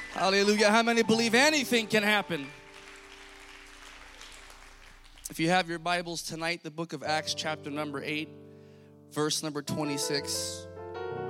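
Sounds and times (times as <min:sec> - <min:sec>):
audience clapping hands: 0:00.0 - 0:06.4
speech: 0:00.2 - 0:02.6, 0:05.3 - 0:08.5, 0:09.1 - 0:10.7.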